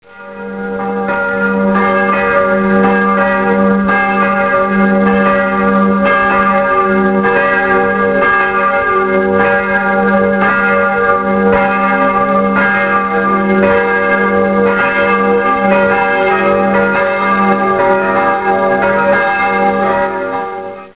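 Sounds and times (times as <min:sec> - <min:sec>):
church bells: 0:00.0 - 0:20.9.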